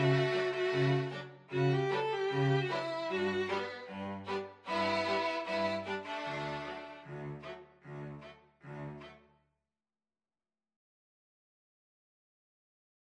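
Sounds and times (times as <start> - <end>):
string quintet playing: 0.0 - 9.2.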